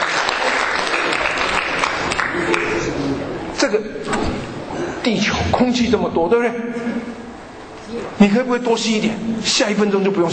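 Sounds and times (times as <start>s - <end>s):
audience applause at a talk: 0.0s - 3.2s
speech: 3.7s - 4.2s, 5.0s - 7.2s, 7.9s - 10.3s.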